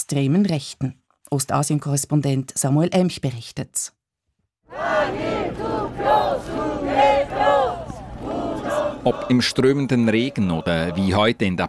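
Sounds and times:
speech: 0:00.0 - 0:04.0, 0:09.0 - 0:11.6
protesters chanting slogans: 0:04.7 - 0:11.6.

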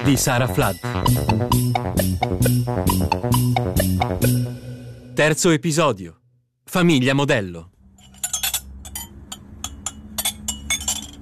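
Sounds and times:
speech: 0:00.1 - 0:07.7
ceramic plates clinking: 0:08.0 - 0:11.2.

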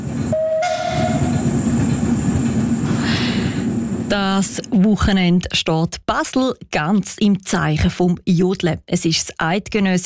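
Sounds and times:
steam tram rumbling along the tracks: 0:00.0 - 0:04.9
high whistle-like tone: 0:00.3 - 0:01.5
faint squeal: 0:00.4 - 0:01.6
speech: 0:04.1 - 0:10.0.

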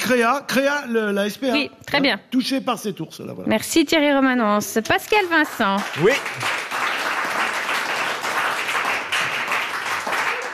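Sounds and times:
speech: 0:00.1 - 0:06.6
audience applause: 0:05.1 - 0:10.5.

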